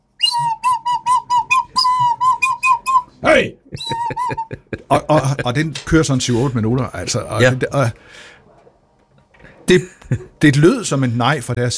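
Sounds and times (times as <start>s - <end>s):
nose flute playing: 0.1s - 3.2s, 3.8s - 4.5s
speech: 3.3s - 8.3s, 9.7s - 11.7s
laughter: 3.6s - 5.8s.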